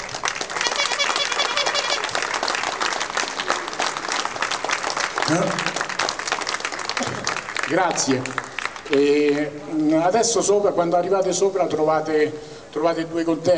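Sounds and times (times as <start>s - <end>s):
audience applause: 0.0s - 9.4s
speech: 5.3s - 5.8s, 7.7s - 13.5s.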